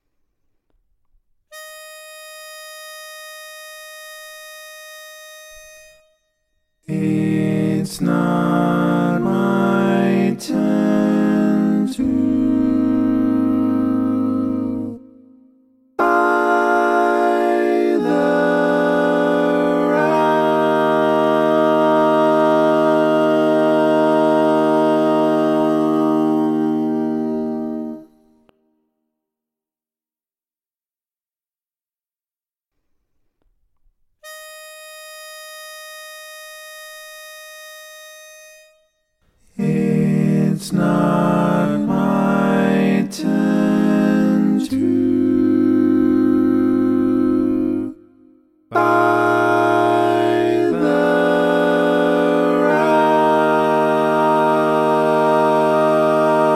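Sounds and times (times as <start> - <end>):
barbershop tags sung by all parts: 6.8 - 15.0, 16.0 - 28.2, 39.5 - 48.0, 48.7 - 56.5.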